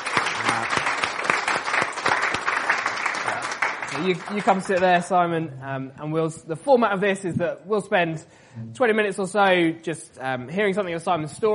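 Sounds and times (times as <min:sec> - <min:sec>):
audience clapping: 0:00.0 - 0:05.1
speech: 0:04.0 - 0:11.5.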